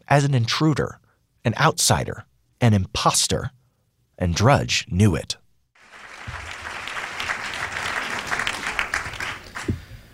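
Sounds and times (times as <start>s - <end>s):
speech: 0.1s - 3.6s, 4.2s - 5.4s
applause for Matt Drudge at the press club in Washington: 5.8s - 9.9s.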